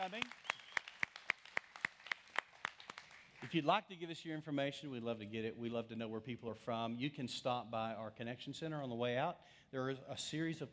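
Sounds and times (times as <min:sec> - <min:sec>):
speech: 0:00.0 - 0:00.5, 0:03.4 - 0:10.7
group applauding: 0:00.0 - 0:03.6.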